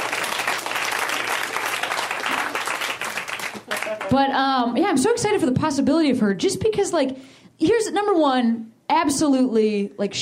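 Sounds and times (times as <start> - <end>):
people clapping: 0.0 - 4.3
speech: 4.1 - 10.2.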